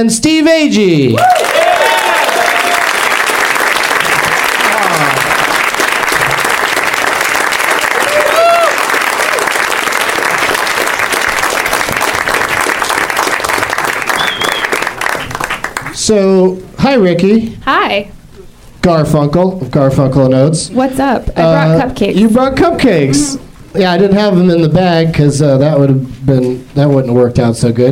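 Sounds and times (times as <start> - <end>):
speech: 0.0 - 1.6, 16.1 - 18.2, 18.8 - 27.9
audience applause welcoming guests to the stage: 1.2 - 16.0
whistle-like tones: 14.1 - 14.8.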